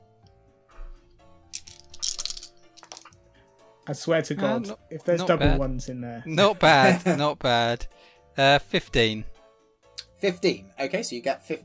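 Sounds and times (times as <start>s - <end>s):
four six-sided dice being rolled: 1.5s - 3.2s
speech: 3.9s - 9.3s, 10.2s - 11.6s.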